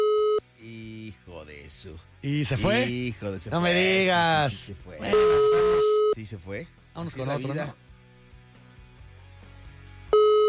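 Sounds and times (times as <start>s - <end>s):
outgoing WhatsApp call ringing tone beep: 0.0s - 0.4s, 5.0s - 6.2s, 10.2s - 10.4s
speech: 1.7s - 5.4s, 6.2s - 7.8s.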